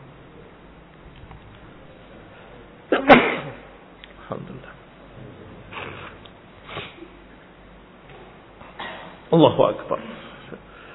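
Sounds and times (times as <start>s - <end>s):
sneeze: 2.9s - 3.8s, 5.7s - 7.2s, 8.8s - 9.2s
speech: 4.3s - 4.8s, 9.3s - 10.2s.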